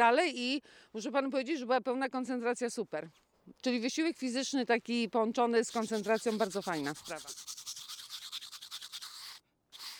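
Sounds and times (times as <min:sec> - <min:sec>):
speech: 0:00.0 - 0:07.6
hand brush scrubbing ice off a disc golf tee pad in winter: 0:05.6 - 0:09.9.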